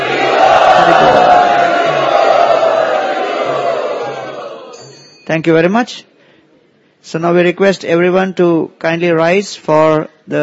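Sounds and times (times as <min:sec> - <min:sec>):
crowd loudly chanting in unison to welcome first-time students: 0:00.0 - 0:04.8
speech: 0:05.3 - 0:06.1, 0:07.0 - 0:10.4.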